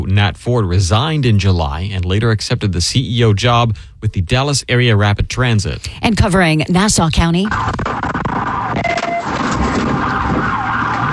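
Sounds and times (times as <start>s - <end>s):
speech: 0.1s - 8.0s, 8.7s - 9.4s
police siren wailing during a vehicle pursuit in Fernandina Beach: 8.3s - 11.1s.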